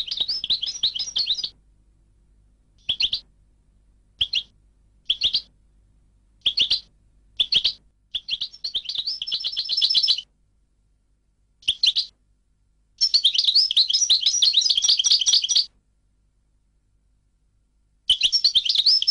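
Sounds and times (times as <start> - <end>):
European goldfinch chirps and twittering trill: 0.0 - 1.5, 2.8 - 3.2, 4.2 - 4.5, 5.1 - 5.5, 6.4 - 6.8, 7.4 - 10.2, 13.0 - 15.7, 18.1 - 19.0
faint low hum: 0.0 - 19.0.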